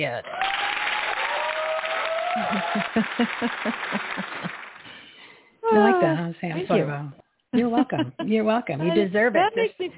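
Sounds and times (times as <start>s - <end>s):
speech: 0.0s - 0.5s, 2.4s - 4.6s, 5.7s - 9.9s
audience applause: 0.2s - 5.1s
laughter: 2.1s - 4.8s, 7.6s - 9.0s.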